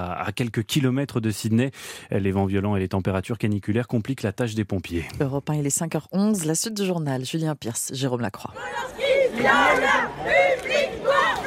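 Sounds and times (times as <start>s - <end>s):
speech: 0.0s - 11.0s
feminist protesters chanting slogans outside a Paris cinema in the Latin Quarter: 8.5s - 11.4s.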